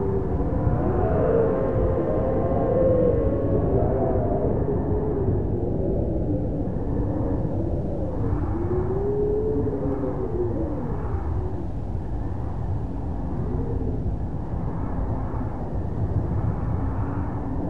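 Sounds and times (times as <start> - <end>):
wind drone moaning in hallway: 0.0 - 17.6.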